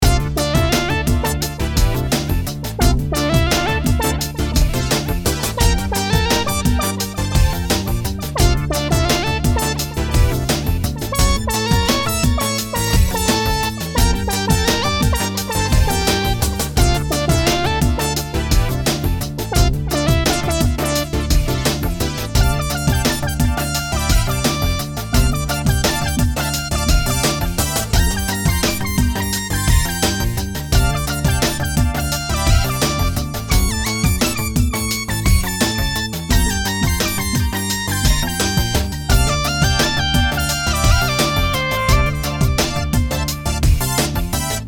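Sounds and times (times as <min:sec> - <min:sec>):
funk rock band playing: 0:00.0 - 0:44.6.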